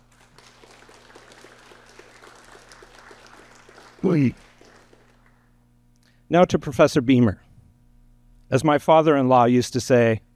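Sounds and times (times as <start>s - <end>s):
round of applause: 0.0s - 5.5s
speech: 4.0s - 4.5s, 6.3s - 7.4s, 8.5s - 10.2s.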